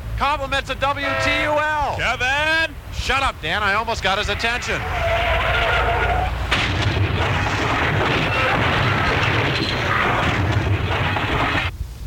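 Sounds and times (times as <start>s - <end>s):
speech: 0.2s - 5.2s
car skidding and crashing radio promo sound effect: 4.2s - 11.7s.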